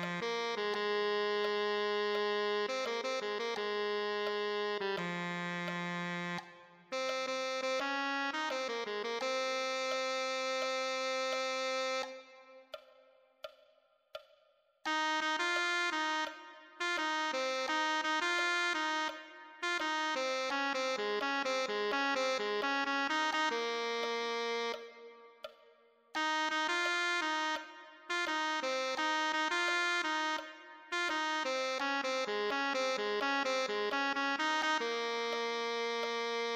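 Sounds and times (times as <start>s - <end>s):
tenor saxophone: 0.0s - 12.9s, 14.9s - 36.5s.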